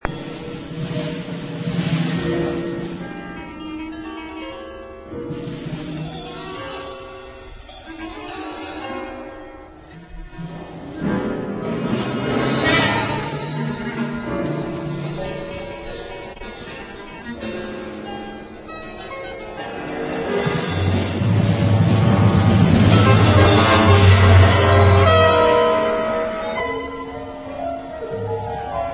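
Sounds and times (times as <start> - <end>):
double concerto: 0.0 - 28.9.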